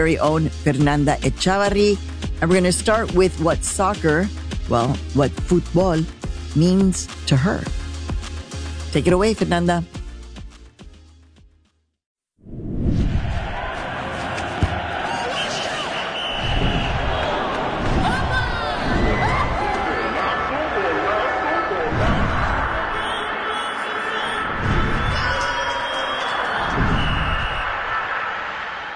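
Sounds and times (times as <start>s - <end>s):
speech: 0.0s - 7.8s, 8.9s - 10.0s
constant buzzing from the football stadium: 13.2s - 28.9s
fans chanting off-key: 13.3s - 28.9s
whistles: 15.5s - 17.4s, 23.0s - 28.0s.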